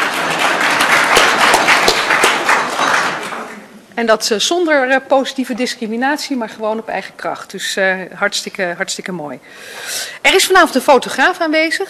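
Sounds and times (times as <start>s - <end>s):
audience applause: 0.0s - 3.7s
speech: 4.0s - 11.8s.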